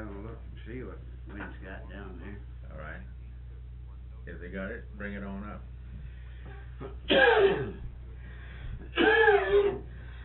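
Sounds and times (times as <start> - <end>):
speech: 0.7 - 3.2, 4.2 - 5.8, 6.4 - 7.8
coughing fit: 6.8 - 7.9, 8.8 - 9.9.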